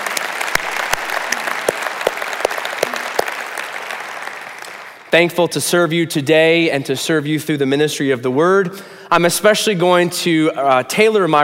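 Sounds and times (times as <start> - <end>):
audience applause welcoming church members: 0.0 - 5.1
speech: 5.1 - 11.4.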